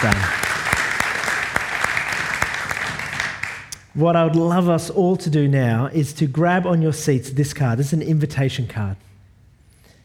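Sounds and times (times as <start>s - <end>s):
audience applause: 0.0s - 3.7s
speech: 4.0s - 9.1s.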